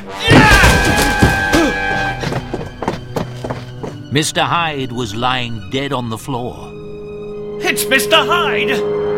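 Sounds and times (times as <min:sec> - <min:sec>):
door being broken down: 0:00.2 - 0:01.9
speech: 0:04.1 - 0:06.7, 0:07.7 - 0:09.0.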